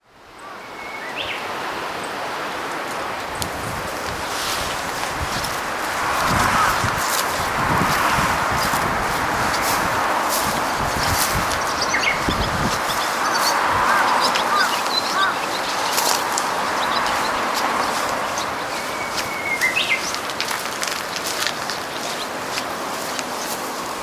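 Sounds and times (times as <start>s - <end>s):
Japanese bush warbler song: 0.3s - 24.0s.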